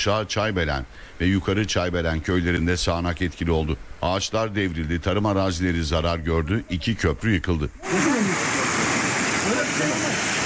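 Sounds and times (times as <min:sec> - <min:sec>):
speech: 0:00.0 - 0:08.3
floodwater of the overflowing Yeşilırmak river roaring through Pazar district in Tokat: 0:07.8 - 0:10.4.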